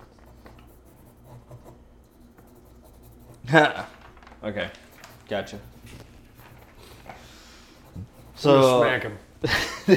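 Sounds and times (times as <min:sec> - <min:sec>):
pen scratching across paper writing a note: 0:00.0 - 0:03.8, 0:04.8 - 0:08.9
speech: 0:03.5 - 0:06.0, 0:08.4 - 0:09.9
laughter: 0:09.4 - 0:09.9.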